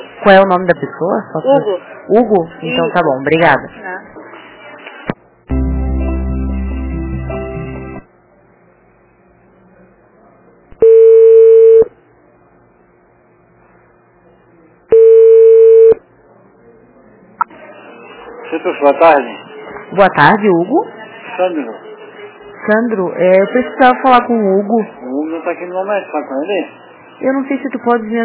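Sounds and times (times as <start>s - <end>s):
speech: 0.2s - 3.9s, 18.6s - 21.9s, 22.6s - 28.2s
long loud telephone ringback tones: 10.8s - 11.9s, 14.9s - 16.0s.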